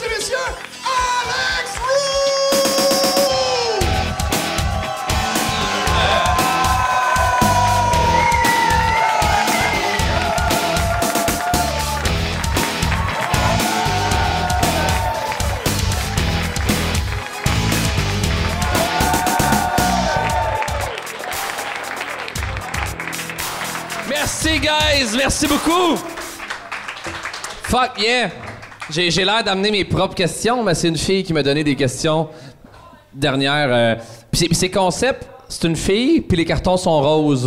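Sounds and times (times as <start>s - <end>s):
crowd clapping: 0.0s - 29.4s
whoops and shouts: 0.9s - 12.1s, 13.0s - 15.7s, 18.5s - 21.4s
speech: 25.4s - 26.1s, 27.7s - 32.4s, 33.1s - 37.4s.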